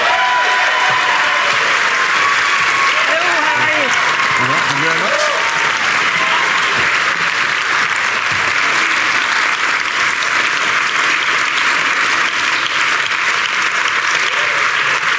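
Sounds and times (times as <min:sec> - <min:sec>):
audience applause welcoming a guest: 0:00.0 - 0:15.1
scattered cheers and murmurs: 0:00.0 - 0:15.1.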